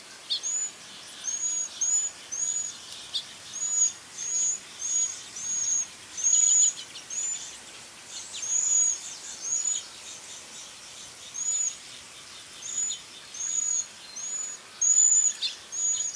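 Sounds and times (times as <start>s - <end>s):
cedar waxwing thin high seee calls: 0.2s - 12.0s, 12.6s - 16.1s.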